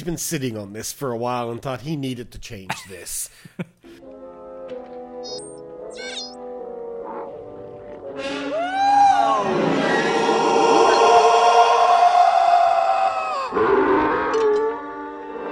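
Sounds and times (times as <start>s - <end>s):
speech: 0.0s - 3.7s
eerie wavering scream sound effect: 8.2s - 15.5s.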